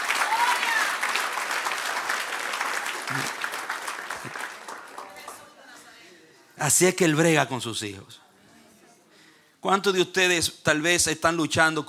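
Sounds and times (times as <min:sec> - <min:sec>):
audience applause: 0:00.0 - 0:05.6
speech: 0:03.1 - 0:03.4, 0:06.6 - 0:08.2, 0:09.6 - 0:11.8.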